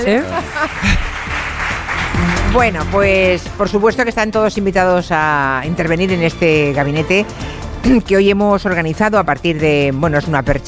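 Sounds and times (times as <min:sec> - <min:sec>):
speech: 0:00.0 - 0:01.1, 0:02.2 - 0:10.6
people laughing: 0:00.0 - 0:02.4
audience applause: 0:00.0 - 0:03.5.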